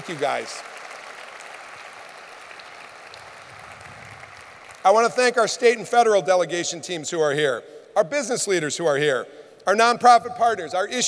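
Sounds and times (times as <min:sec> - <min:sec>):
speech: 0:00.0 - 0:00.8, 0:04.8 - 0:11.0
crowd applause: 0:00.0 - 0:05.0.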